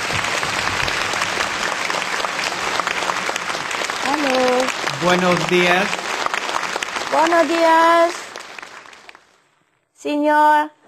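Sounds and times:
audience applause: 0.0s - 9.3s
speech: 5.0s - 6.0s, 7.1s - 8.2s, 10.0s - 10.8s.

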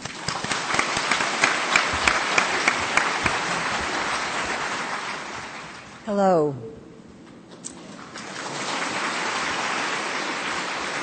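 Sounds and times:
applause: 0.0s - 6.0s, 8.2s - 11.0s
speech: 6.1s - 6.7s.

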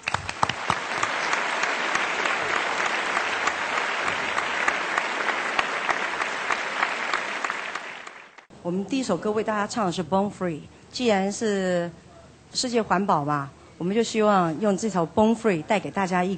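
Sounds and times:
audience applause: 0.0s - 8.5s
speech: 8.7s - 16.3s.

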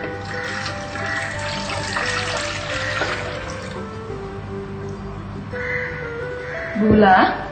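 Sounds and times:
water pouring in as the first ingredient: 0.0s - 4.0s
speech: 6.8s - 7.4s.

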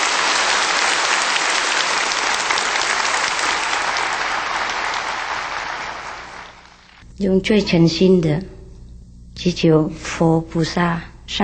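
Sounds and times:
warm applause from a large crowd: 0.0s - 7.0s
speech: 7.2s - 8.6s, 9.4s - 11.4s.

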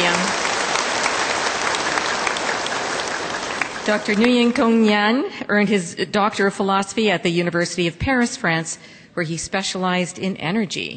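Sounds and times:
audience applause: 0.0s - 4.7s
speech: 3.9s - 10.9s.

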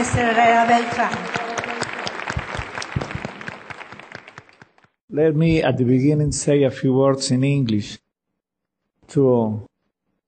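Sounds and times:
speech: 0.0s - 1.4s, 5.2s - 8.0s, 9.1s - 9.7s
audience applause: 0.0s - 5.0s.

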